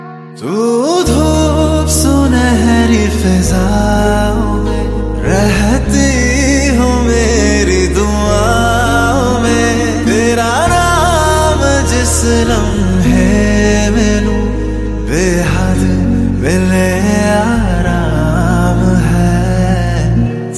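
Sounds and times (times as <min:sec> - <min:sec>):
new romantic Hindi song ringtone: 0:00.0 - 0:20.5.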